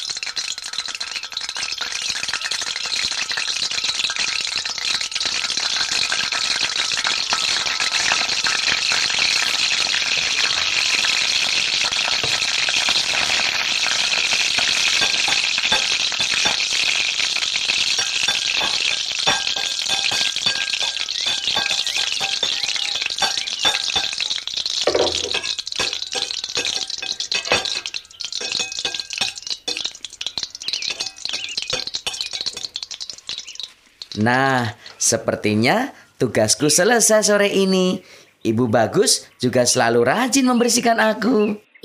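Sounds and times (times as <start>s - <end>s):
fish frying in a pan over a blue stove flame: 0.0s - 35.1s
metallic stirring clinks and rattles: 17.8s - 34.2s
speech: 34.2s - 41.8s.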